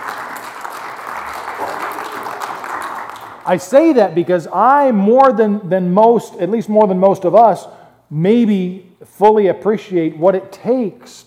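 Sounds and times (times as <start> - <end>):
audience applause: 0.0 - 3.5
speech: 3.4 - 11.2.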